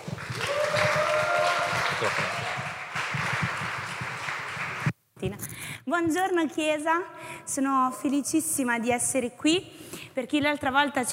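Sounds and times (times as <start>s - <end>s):
audience applauding: 0.0s - 4.9s
speech: 2.0s - 2.4s, 5.9s - 11.1s.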